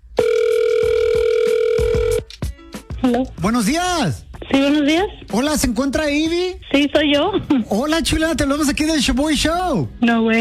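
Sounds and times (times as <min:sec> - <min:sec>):
telephone ring tone on an outgoing call to a contest winner: 0:00.2 - 0:02.3
speech: 0:03.0 - 0:10.4.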